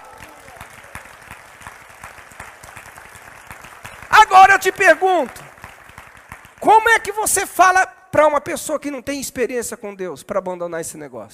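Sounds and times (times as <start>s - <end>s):
audience applause: 0.0s - 7.1s
speech: 4.3s - 5.4s, 6.6s - 11.3s.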